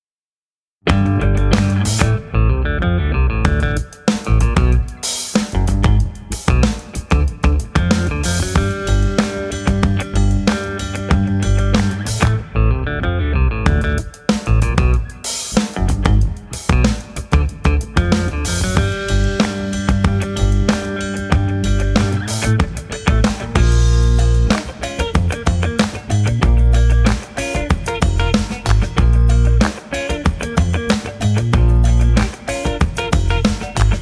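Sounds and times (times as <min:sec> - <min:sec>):
guitar: 0:00.8 - 0:34.0.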